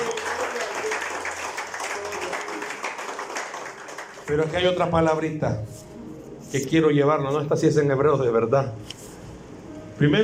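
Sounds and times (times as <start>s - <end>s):
applause: 0.0s - 4.9s
speech: 4.3s - 5.9s, 6.5s - 8.9s, 10.0s - 10.2s.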